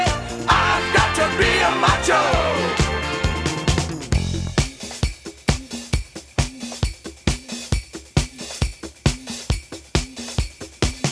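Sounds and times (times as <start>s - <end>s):
free spins slot machine music loop: 0.0s - 8.6s.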